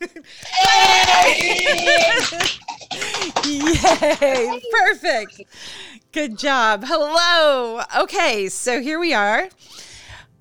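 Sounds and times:
speech: 0:00.0 - 0:02.6, 0:03.4 - 0:09.9
laughter: 0:00.0 - 0:05.6
audience clapping: 0:00.4 - 0:04.8.

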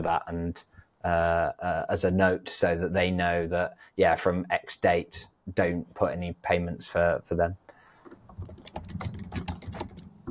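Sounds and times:
speech: 0:00.0 - 0:07.6
typing on a computer keyboard: 0:08.0 - 0:10.2.

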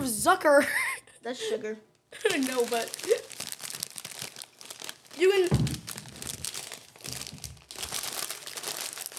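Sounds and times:
speech: 0:00.2 - 0:03.3, 0:05.2 - 0:05.8
snack bag crinkling as it is torn open: 0:02.1 - 0:09.1.

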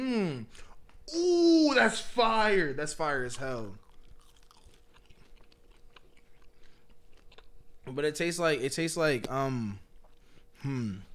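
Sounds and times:
speech: 0:00.1 - 0:03.8, 0:07.9 - 0:09.8, 0:10.6 - 0:11.1
chewing food for ASMR: 0:03.2 - 0:08.0.

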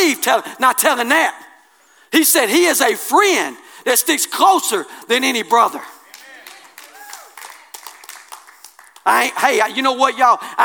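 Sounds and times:
speech: 0:00.1 - 0:01.4, 0:02.1 - 0:06.0, 0:09.0 - 0:10.6
audience clapping: 0:06.0 - 0:09.5.

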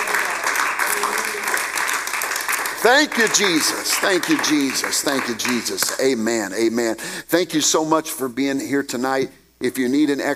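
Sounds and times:
audience clapping hands: 0:00.0 - 0:06.5
speech: 0:02.8 - 0:10.3.

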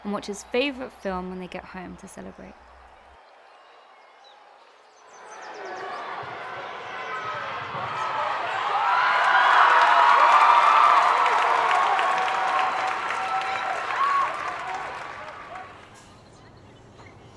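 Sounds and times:
speech: 0:00.0 - 0:02.7
crowd cheering: 0:00.0 - 0:16.6
crowd applauding: 0:05.4 - 0:16.4.

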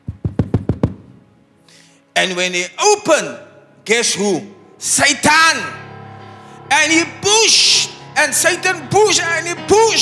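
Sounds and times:
knock on a door: 0:00.1 - 0:01.1
speech: 0:02.2 - 0:05.8, 0:06.7 - 0:10.0.

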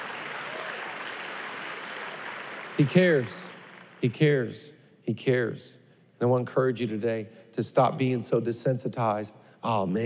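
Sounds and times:
audience clapping: 0:00.0 - 0:04.2
speech: 0:02.8 - 0:10.0.

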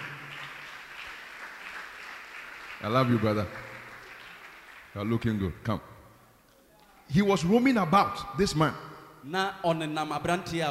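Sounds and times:
audience clapping: 0:00.0 - 0:05.5
speech: 0:02.8 - 0:03.7, 0:05.0 - 0:05.9, 0:07.1 - 0:10.7.

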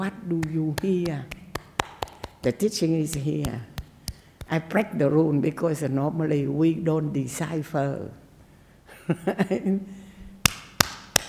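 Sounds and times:
speech: 0:00.0 - 0:01.4, 0:02.4 - 0:03.7, 0:04.5 - 0:08.2, 0:09.1 - 0:10.0
hand claps: 0:00.4 - 0:04.6, 0:10.4 - 0:11.2.

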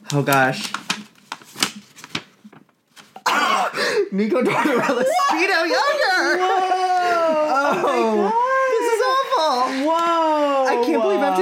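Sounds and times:
speech: 0:00.1 - 0:00.8, 0:04.1 - 0:08.5
handmade paper envelope being opened: 0:00.1 - 0:03.2
laughter: 0:04.4 - 0:11.3.

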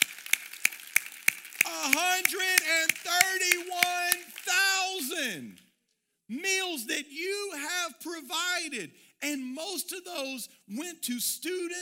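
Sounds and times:
audience clapping: 0:00.0 - 0:05.6
speech: 0:01.7 - 0:04.0, 0:06.3 - 0:11.8.

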